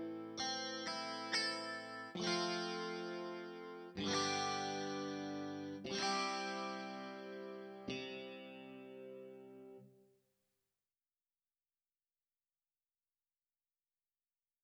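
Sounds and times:
electric guitar: 0.0 - 9.9.

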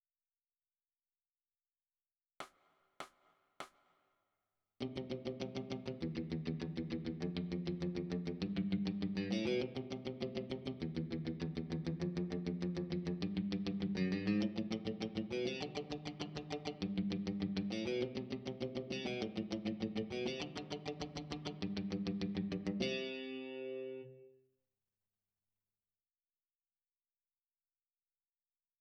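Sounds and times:
electric guitar: 4.8 - 24.4.

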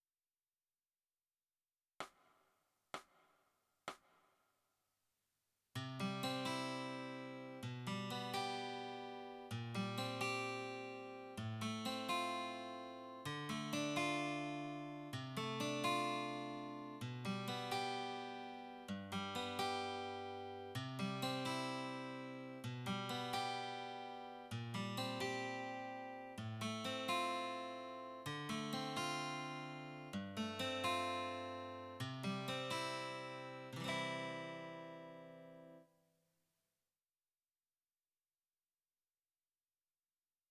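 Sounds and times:
guitar: 5.8 - 35.9.

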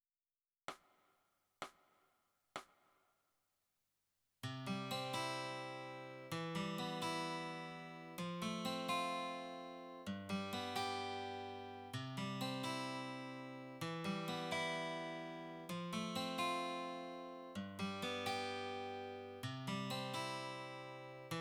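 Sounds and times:
guitar: 4.4 - 21.4.

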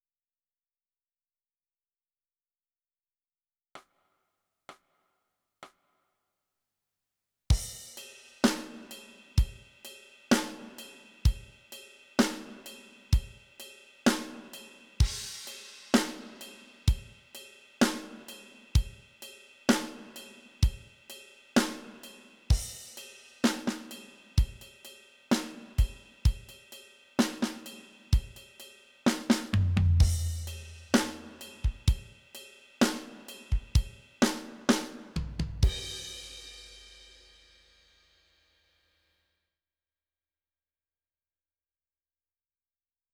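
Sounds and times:
drums: 7.5 - 38.2.

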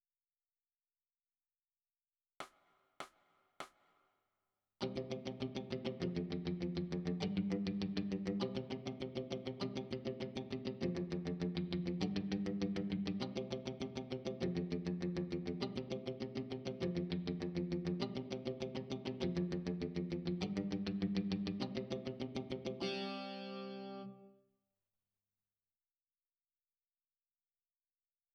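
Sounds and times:
electric guitar: 4.8 - 24.3.

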